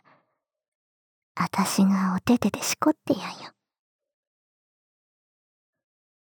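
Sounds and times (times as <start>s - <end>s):
whispering: 1.5s - 3.5s.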